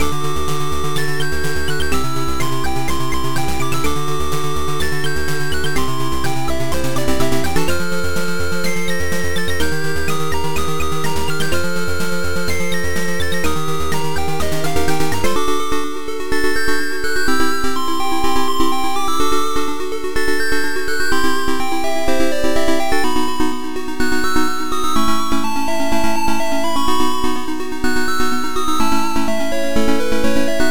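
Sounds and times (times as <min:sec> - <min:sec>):
game music: 0:00.0 - 0:30.7.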